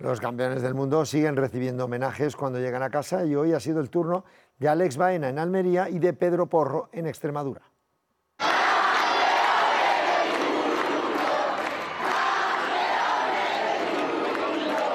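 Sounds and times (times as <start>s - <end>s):
speech: 0.0s - 7.7s
crowd cheering and applauding a welcome: 8.4s - 14.9s.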